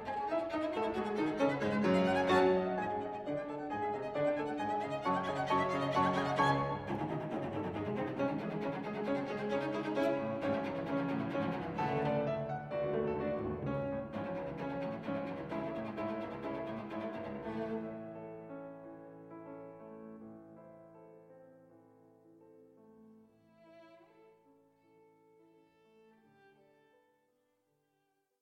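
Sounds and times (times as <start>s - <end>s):
cello playing a wild dance: 0.0s - 18.0s.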